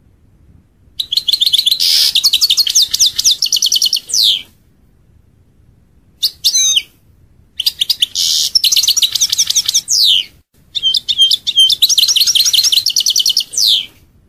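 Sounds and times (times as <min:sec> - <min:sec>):
European goldfinch singing: 0:01.0 - 0:04.4, 0:07.6 - 0:13.9.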